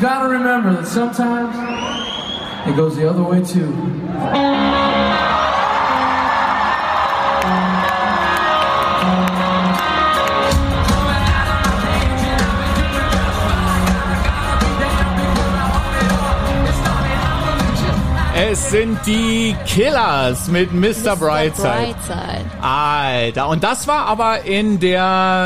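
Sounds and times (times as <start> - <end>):
speech: 0.0 - 4.8, 18.5 - 25.4
live concert crowd cheering in arena: 3.9 - 24.2.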